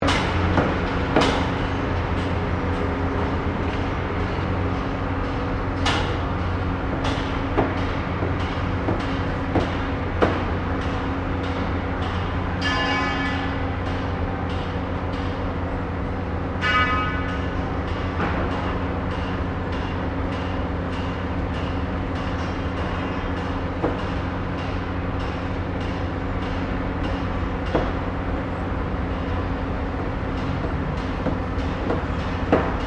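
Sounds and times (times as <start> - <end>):
hammering at a large construction site: 0.0 - 15.5, 16.6 - 32.8
construction machinery: 0.0 - 32.8.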